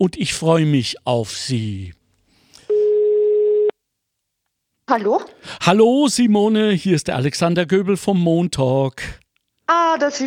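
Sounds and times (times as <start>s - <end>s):
speech: 0.0s - 2.0s, 4.9s - 10.2s
telephone ringback tone while placing a call: 2.7s - 3.7s.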